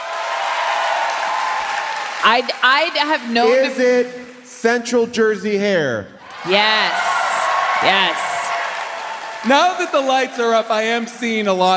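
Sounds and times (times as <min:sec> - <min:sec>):
audience applause voting by clapping: 0:00.0 - 0:04.8, 0:06.2 - 0:11.7
speech: 0:02.2 - 0:07.0, 0:07.8 - 0:08.3, 0:09.4 - 0:11.7.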